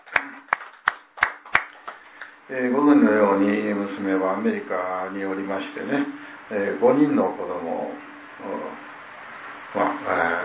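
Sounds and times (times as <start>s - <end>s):
handclaps at a morning gathering celebrating a birthday: 0.0s - 2.4s
speech: 2.5s - 8.8s, 9.7s - 10.4s.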